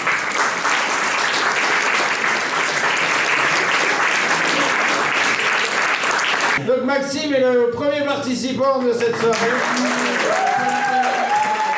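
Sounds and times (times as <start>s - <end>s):
audience applause: 0.0s - 6.6s, 9.0s - 11.7s
speech: 7.1s - 11.2s.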